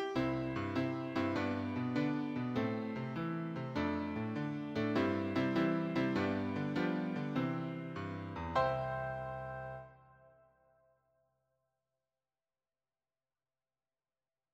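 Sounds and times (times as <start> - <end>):
piano accompaniment for church and sunday school hymns: 0.0 - 10.4.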